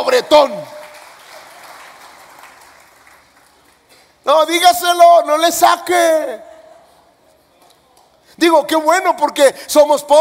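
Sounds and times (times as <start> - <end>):
speech: 0.1 - 0.8, 4.3 - 6.5, 8.4 - 10.2
audience applause: 0.8 - 3.9.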